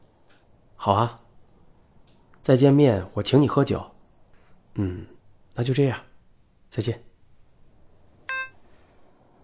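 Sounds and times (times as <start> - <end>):
faint hiss: 0.0 - 9.4
speech: 0.8 - 1.2, 2.4 - 3.9, 4.8 - 6.1, 6.7 - 7.1
telephone hang-up beep: 8.3 - 8.6.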